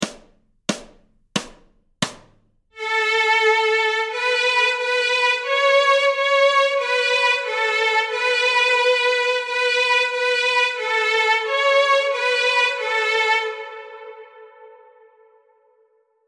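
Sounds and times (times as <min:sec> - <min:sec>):
fiddle tune: 0:02.8 - 0:15.3.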